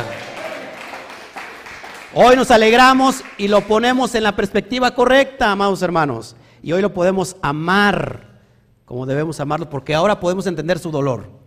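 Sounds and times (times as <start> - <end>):
audience applause: 0.0 - 3.7
speech: 2.1 - 8.3, 8.9 - 11.4.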